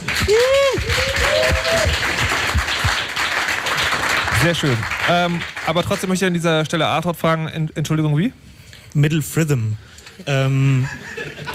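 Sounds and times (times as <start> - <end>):
audience applause: 0.0 - 6.2
speech: 4.4 - 11.5
laughter: 10.6 - 11.5.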